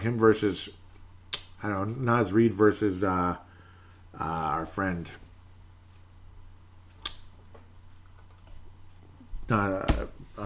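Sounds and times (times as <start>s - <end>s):
speech: 0.0s - 0.8s, 1.6s - 3.5s, 4.2s - 5.2s, 9.5s - 10.4s
clicking on a computer: 8.0s - 8.5s.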